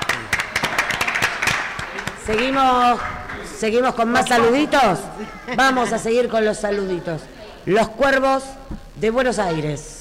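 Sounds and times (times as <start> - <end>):
applause: 0.0 - 2.6
speech: 2.3 - 9.9.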